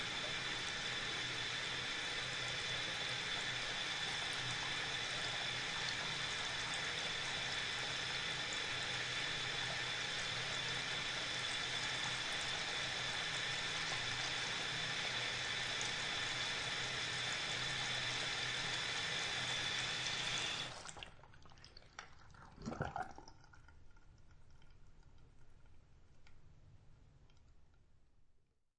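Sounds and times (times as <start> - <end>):
bathroom faucet turned on, running and turned off: 0.0 - 21.8.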